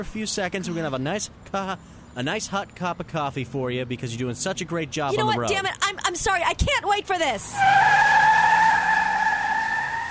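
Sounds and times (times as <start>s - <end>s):
speech: 0.0s - 8.1s
car speeding away with tires skidding: 7.4s - 10.0s.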